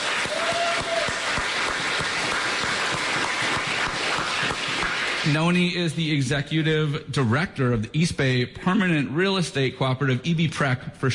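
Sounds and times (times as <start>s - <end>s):
audience applause: 0.0s - 5.6s
speech: 5.3s - 11.1s.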